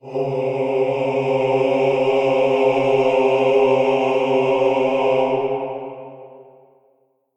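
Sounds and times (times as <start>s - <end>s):
requiem choir: 0.0s - 6.8s.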